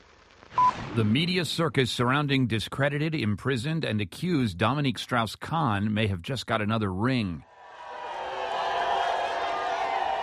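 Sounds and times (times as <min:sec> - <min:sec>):
speech: 0:01.0 - 0:07.5
crowd of domestic and hotel housekeeping workers jeering Dominique Strauss-Kahn outside a courthouse: 0:07.5 - 0:10.2.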